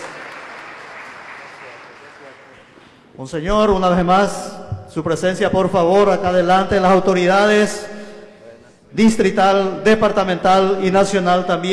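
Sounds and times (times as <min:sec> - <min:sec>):
crowd applauding: 0:00.0 - 0:03.2
speech: 0:03.2 - 0:08.0, 0:08.9 - 0:11.7.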